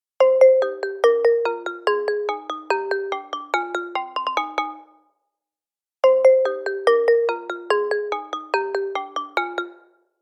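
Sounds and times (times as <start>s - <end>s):
phone ringtone: 0.3s - 4.9s, 6.1s - 9.9s.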